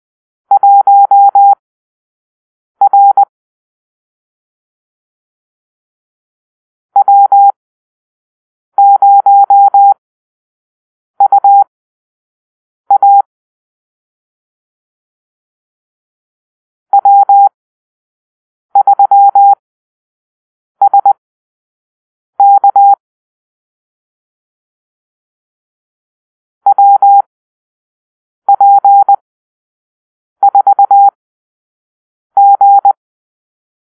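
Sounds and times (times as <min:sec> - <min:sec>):
morse code call-sign beeps: 0:00.6 - 0:01.6, 0:02.8 - 0:03.3, 0:07.0 - 0:07.6, 0:08.8 - 0:10.0, 0:11.2 - 0:11.6, 0:12.9 - 0:13.3, 0:17.0 - 0:17.5, 0:18.8 - 0:19.6, 0:20.8 - 0:21.2, 0:22.4 - 0:23.0, 0:26.7 - 0:27.3, 0:28.5 - 0:29.2, 0:30.4 - 0:31.2, 0:32.4 - 0:33.0.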